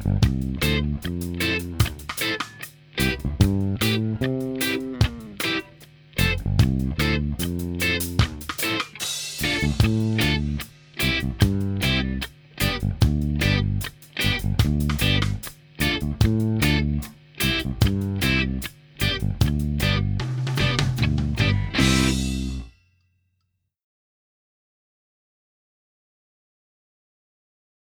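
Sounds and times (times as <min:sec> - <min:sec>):
keyboard: 0:00.0 - 0:08.8, 0:09.4 - 0:22.7.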